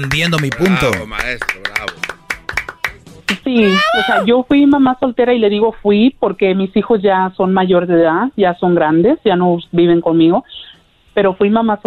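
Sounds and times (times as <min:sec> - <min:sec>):
speech: 0:00.0 - 0:01.7, 0:03.5 - 0:11.8
applause: 0:00.0 - 0:04.2.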